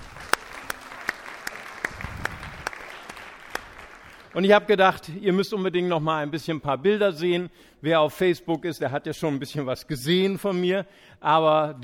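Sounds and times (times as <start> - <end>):
audience applause: 0.0 - 4.4
speech: 4.4 - 11.8.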